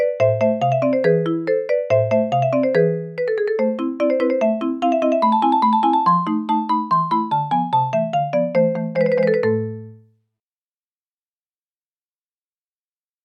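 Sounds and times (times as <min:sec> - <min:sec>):
marimba: 0:00.0 - 0:10.0.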